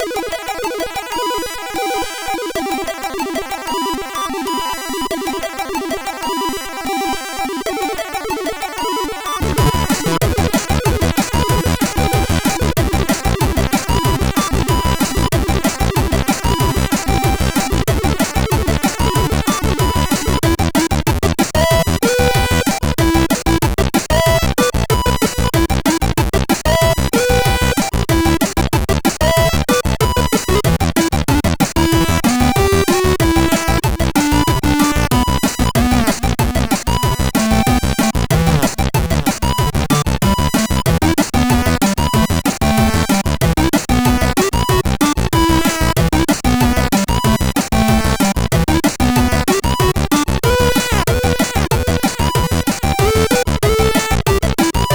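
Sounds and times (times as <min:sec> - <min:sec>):
SID CSG8580 chip music: 0:00.0 - 0:54.9.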